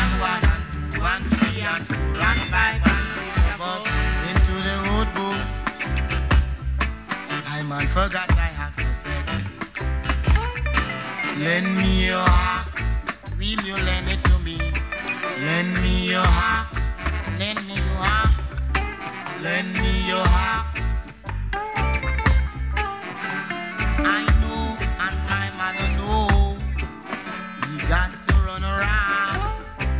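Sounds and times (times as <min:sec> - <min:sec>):
reggae music: 0:00.0 - 0:29.9.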